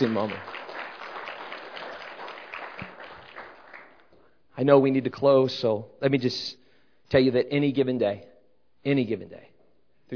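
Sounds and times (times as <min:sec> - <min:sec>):
speech: 0:00.0 - 0:00.6, 0:04.6 - 0:09.5
crowd applauding: 0:00.0 - 0:04.2.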